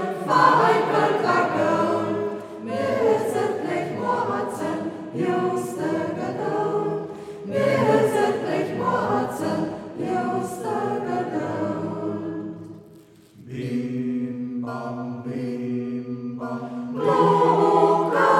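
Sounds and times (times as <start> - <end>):
singing circle in local dialect: 0.0 - 18.3.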